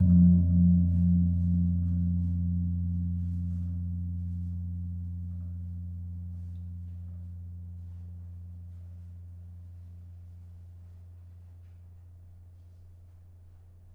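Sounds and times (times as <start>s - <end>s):
kempul gong of a gamelan: 0.0s - 8.8s.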